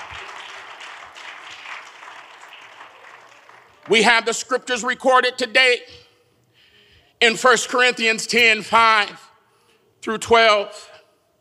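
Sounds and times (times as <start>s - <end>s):
audience clapping hands: 0.0s - 4.3s
speech: 3.9s - 6.1s, 7.2s - 9.3s, 10.0s - 10.9s.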